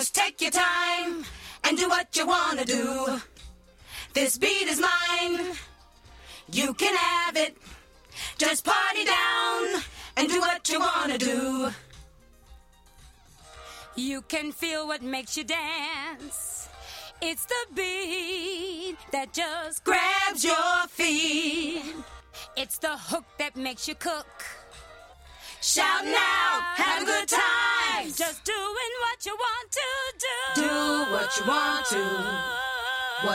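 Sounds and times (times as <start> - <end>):
a cappella singing: 0.0 - 5.7, 6.4 - 11.9, 14.0 - 22.1, 25.6 - 33.3.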